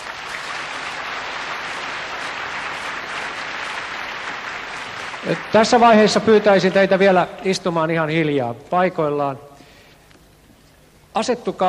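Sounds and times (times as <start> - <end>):
audience applause: 0.0 - 7.6
speech: 5.2 - 9.5, 11.2 - 11.6.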